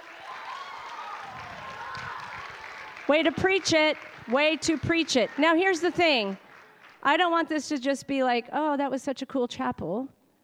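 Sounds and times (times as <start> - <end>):
voices cheering: 0.0 - 7.0
crowd applauding: 0.0 - 7.2
speech: 3.1 - 6.4, 7.0 - 10.2.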